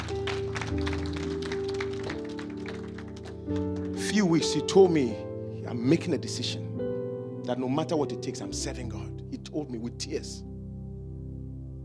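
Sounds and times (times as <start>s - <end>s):
audience applause: 0.0s - 4.0s
speech: 3.5s - 6.7s, 7.5s - 10.5s.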